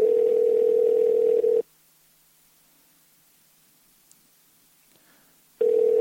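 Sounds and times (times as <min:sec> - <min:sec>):
telephone ringback tone on outgoing call: 0:00.0 - 0:01.6, 0:05.6 - 0:05.9.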